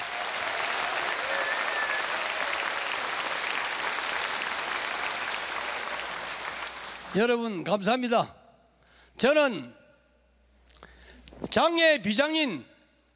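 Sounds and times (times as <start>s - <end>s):
audience applause: 0.0s - 7.2s
speech: 7.1s - 8.4s, 9.2s - 9.8s, 11.5s - 12.7s.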